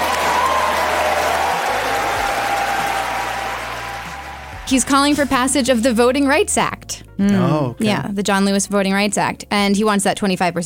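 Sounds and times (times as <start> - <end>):
audience cheering and applauding: 0.0 - 5.3
speech: 4.7 - 10.6.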